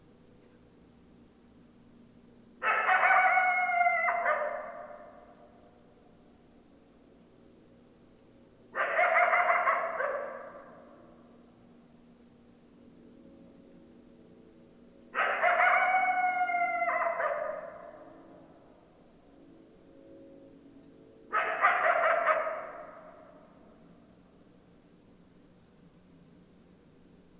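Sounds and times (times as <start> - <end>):
coyotes howling and yipping: 2.6 - 5.5, 8.8 - 11.0, 15.1 - 18.4, 21.3 - 23.4.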